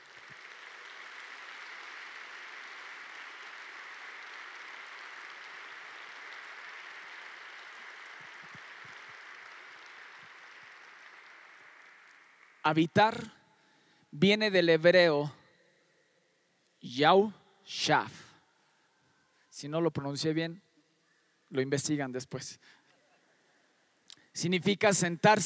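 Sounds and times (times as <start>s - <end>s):
crowd applause: 0.0s - 13.2s
speech: 12.7s - 13.4s, 14.2s - 15.4s, 16.9s - 18.2s, 19.6s - 20.6s, 21.5s - 22.8s, 24.4s - 25.4s.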